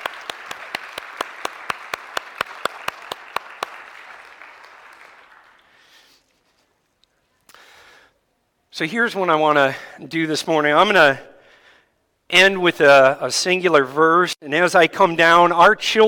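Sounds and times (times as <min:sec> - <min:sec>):
sharp evenly spaced claps: 0:00.0 - 0:05.7
audience applause: 0:00.0 - 0:06.1
speech: 0:08.8 - 0:11.3, 0:12.3 - 0:16.0.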